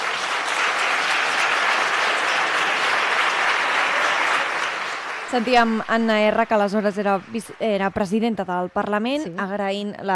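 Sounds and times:
parliament ovation applause: 0.0 - 7.3
speech: 5.3 - 10.1.

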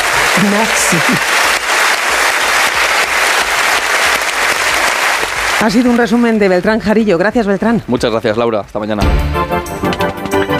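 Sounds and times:
audience ovation at the Cannes ceremony: 0.0 - 7.3
speech: 0.4 - 1.4, 5.6 - 10.0.

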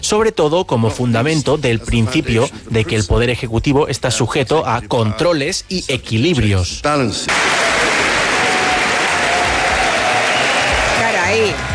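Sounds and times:
speech: 0.0 - 7.9
standing ovation applause from a large crowd: 7.3 - 11.7.

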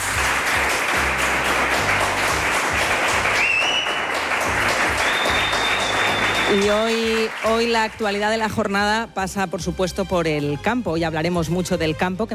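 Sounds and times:
audience applause: 0.0 - 8.2
speech: 6.5 - 12.3.

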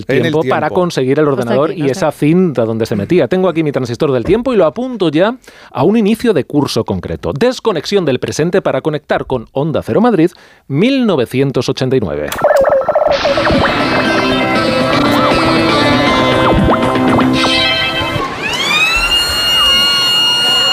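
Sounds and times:
speech: 0.0 - 13.8
electric school entry siren wailing: 12.4 - 20.7.

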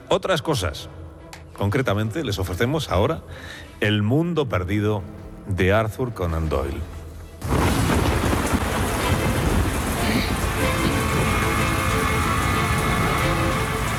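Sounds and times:
speech: 0.1 - 1.0, 1.6 - 7.6
deep rumble of thunder: 7.4 - 13.9
heavy rain: 7.4 - 13.9.

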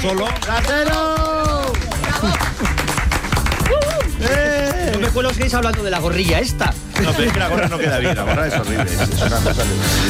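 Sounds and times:
speech: 0.0 - 1.3, 5.1 - 10.0
applause: 0.0 - 7.8
laughter: 1.8 - 2.9, 7.0 - 10.0.

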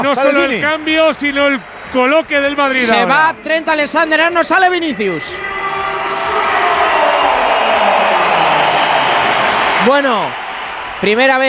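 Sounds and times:
speech: 0.0 - 5.6, 9.8 - 10.4, 11.0 - 11.4
big stadium crowd applause and cheering: 0.0 - 11.4
stadium crowd whistling: 3.4 - 11.4.

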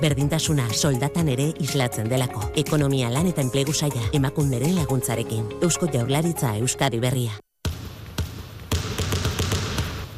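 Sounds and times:
speech: 0.0 - 7.5
basketball bounces in a basketball segment theme jingle on Spanish radio: 7.6 - 10.1.

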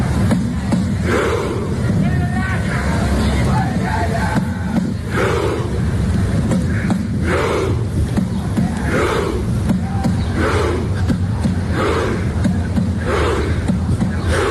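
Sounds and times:
Norwegian football fans chanting in the streets of Miami: 0.0 - 14.4.

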